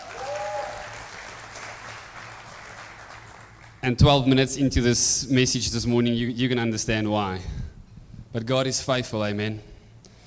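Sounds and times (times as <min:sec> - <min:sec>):
audience applause: 0:00.0 - 0:03.8
speech: 0:03.8 - 0:07.6, 0:08.4 - 0:09.7.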